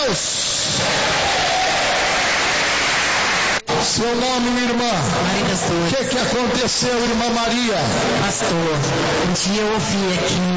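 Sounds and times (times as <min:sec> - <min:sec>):
speech: 0:00.0 - 0:01.4, 0:03.8 - 0:10.5
audience applauding: 0:00.8 - 0:03.8.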